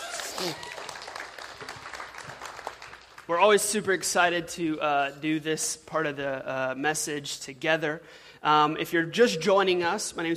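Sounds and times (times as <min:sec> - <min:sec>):
church congregation clapping to welcome the pastor's wife: 0:00.0 - 0:03.6
speech: 0:00.4 - 0:00.7, 0:03.3 - 0:10.3.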